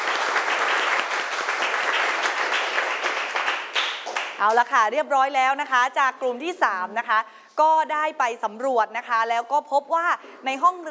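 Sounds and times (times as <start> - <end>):
loud applause from the class: 0.0 - 4.4
speech: 4.4 - 10.8.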